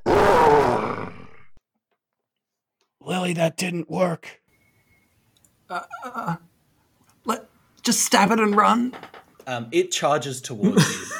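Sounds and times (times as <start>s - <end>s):
person voicing a fearsome growl: 0.0s - 1.6s
speech: 3.1s - 4.4s, 5.7s - 6.5s, 7.2s - 11.1s.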